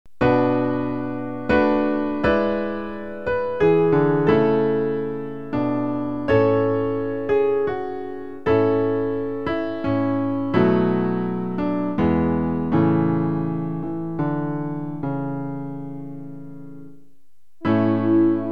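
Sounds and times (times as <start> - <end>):
piano backing track: 0.1 - 18.5.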